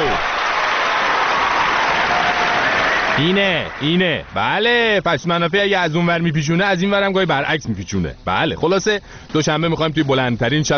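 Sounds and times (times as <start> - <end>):
studio applause: 0.0 - 5.1
speech: 3.2 - 10.7.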